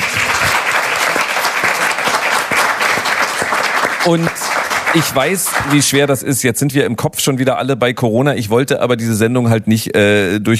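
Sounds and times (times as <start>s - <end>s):
audience applause: 0.0s - 6.2s
speech: 4.0s - 10.5s.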